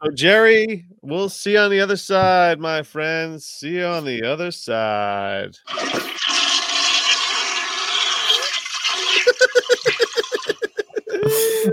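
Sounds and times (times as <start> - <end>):
speech: 0.0 - 6.6
toilet flush: 5.6 - 10.6
laughter: 9.1 - 11.7.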